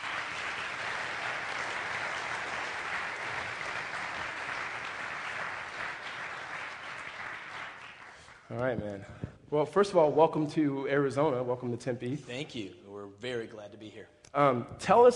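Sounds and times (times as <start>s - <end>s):
audience applause at a Sunday church service: 0.0s - 8.7s
speech: 8.5s - 15.1s.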